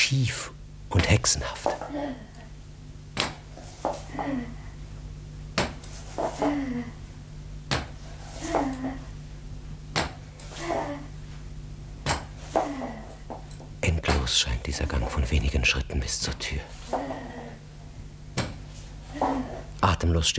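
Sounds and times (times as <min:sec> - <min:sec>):
speech: 0:00.0 - 0:02.4, 0:04.2 - 0:04.6, 0:06.2 - 0:07.0, 0:08.4 - 0:09.0, 0:14.3 - 0:17.2, 0:19.8 - 0:20.3
wooden crutches knocking and thumping on floor: 0:03.1 - 0:04.4, 0:05.5 - 0:06.7, 0:07.6 - 0:09.0, 0:09.9 - 0:11.0, 0:12.0 - 0:14.4, 0:18.3 - 0:19.6.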